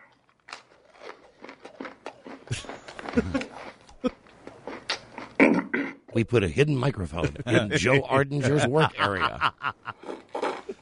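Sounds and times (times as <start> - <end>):
man chewing food: 0.0 - 5.4, 9.9 - 10.8
speech: 2.5 - 3.5, 6.2 - 9.7
laughter: 2.5 - 3.6, 6.9 - 10.1.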